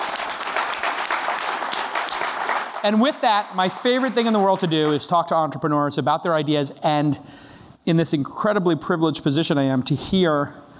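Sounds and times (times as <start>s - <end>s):
audience applause: 0.0s - 5.2s
speech: 2.8s - 10.6s.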